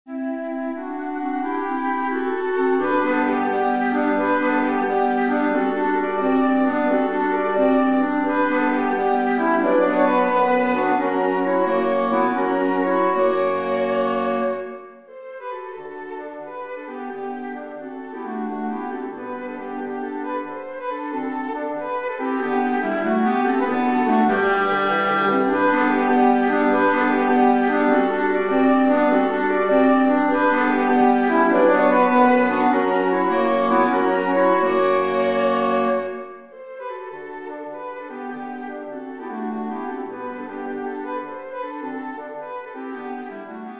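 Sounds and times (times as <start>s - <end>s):
woodwind quartet playing: 0.1s - 43.7s.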